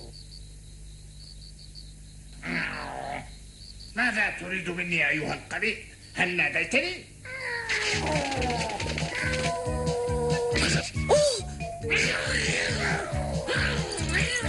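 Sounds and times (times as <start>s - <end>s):
speech: 4.2s - 7.1s, 7.9s - 9.8s
cat meowing and yowling: 7.3s - 11.4s
steady rhythmic music: 8.0s - 14.4s.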